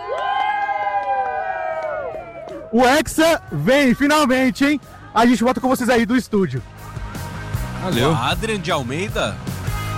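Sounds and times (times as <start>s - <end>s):
football fans shouting and cheering: 0.0s - 9.9s
speech: 2.7s - 6.7s, 7.8s - 9.4s.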